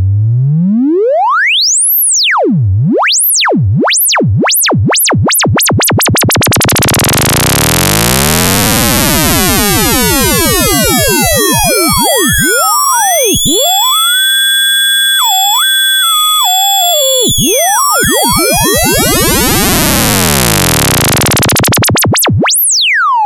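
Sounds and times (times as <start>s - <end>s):
analog synth VCO modulation: 0.1s - 23.2s.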